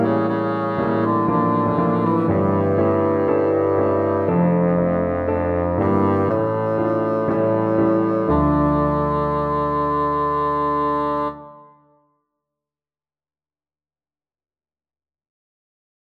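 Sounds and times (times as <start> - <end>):
bassoon playing a galliard sonata: 0.0 - 11.6.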